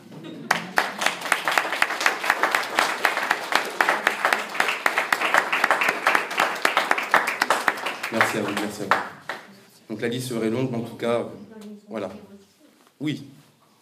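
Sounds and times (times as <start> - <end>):
audience applause: 0.0 - 9.5
speech: 8.4 - 9.1, 9.9 - 12.3, 13.0 - 13.4.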